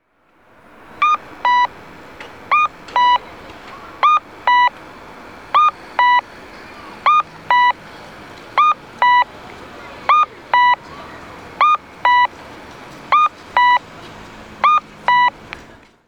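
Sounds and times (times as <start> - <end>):
cuckoo tone of an audible pedestrian crossing signal: 1.0 - 1.8, 2.5 - 4.8, 5.5 - 7.8, 8.6 - 9.3, 10.0 - 10.9, 11.6 - 12.3, 13.1 - 13.9, 14.6 - 15.4.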